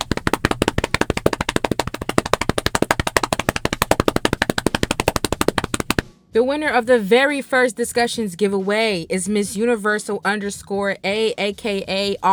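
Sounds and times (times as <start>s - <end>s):
improvised drum roll slaps by one person: 0.0s - 6.1s
speech: 6.3s - 12.3s.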